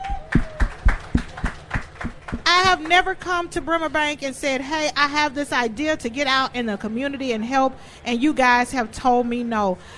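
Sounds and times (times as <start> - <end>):
audience applause recognizing a bank: 0.0 - 3.0
speech: 2.6 - 9.9.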